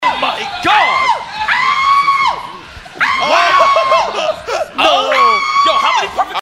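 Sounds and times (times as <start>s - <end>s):
person screaming: 0.8s - 6.2s
laughter: 1.2s - 6.4s.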